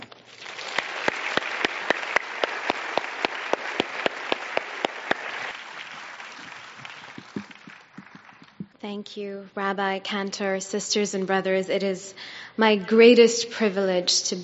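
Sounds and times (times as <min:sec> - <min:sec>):
audience applause welcoming a guest speaker: 0:00.3 - 0:08.8
speech: 0:08.8 - 0:14.4.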